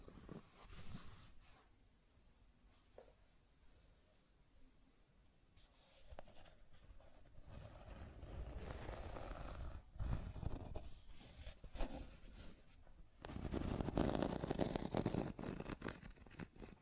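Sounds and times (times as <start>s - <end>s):
scratching and tracing: 6.1s - 12.6s, 13.2s - 16.8s.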